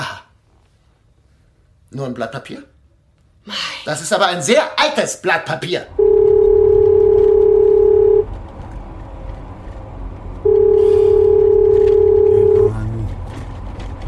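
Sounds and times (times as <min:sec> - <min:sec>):
speech: 0:01.9 - 0:02.7, 0:03.4 - 0:06.0
low rumble: 0:05.9 - 0:14.0
telephone ringback tone: 0:06.0 - 0:08.3, 0:10.5 - 0:12.8.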